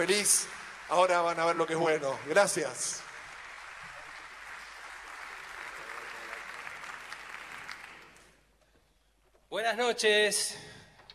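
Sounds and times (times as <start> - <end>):
speech: 0.0 - 3.1, 9.6 - 10.7
audience applause: 0.0 - 8.4.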